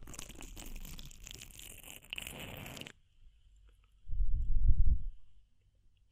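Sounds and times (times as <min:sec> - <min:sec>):
ear cleaning scrapes and rustles: 0:00.0 - 0:03.0
soft low thump: 0:04.1 - 0:05.3.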